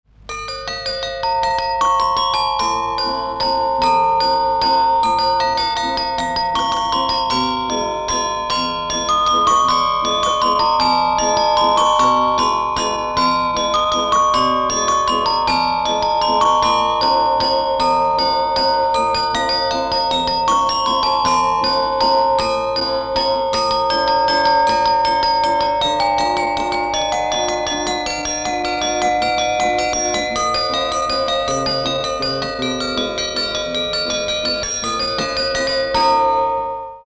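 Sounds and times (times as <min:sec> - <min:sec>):
waltz played by bell ringers: 0:00.3 - 0:37.0.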